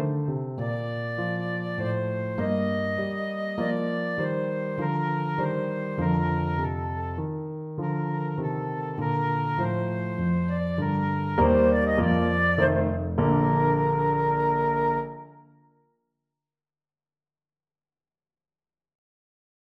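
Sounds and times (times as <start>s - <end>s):
flute playing a minuet: 0.0s - 7.2s, 7.8s - 15.7s.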